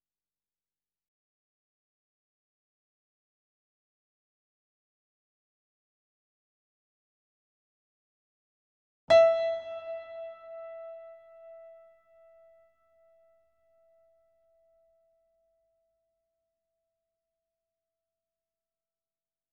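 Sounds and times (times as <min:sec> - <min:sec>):
grand piano playing C5 E5 A5: 0:09.1 - 0:12.6.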